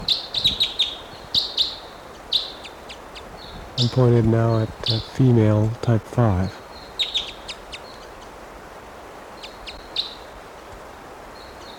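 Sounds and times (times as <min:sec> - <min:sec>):
wild bird chirps: 0:00.0 - 0:05.2, 0:06.4 - 0:08.3, 0:09.3 - 0:10.3
hiss: 0:00.0 - 0:11.7
speech: 0:03.8 - 0:06.6.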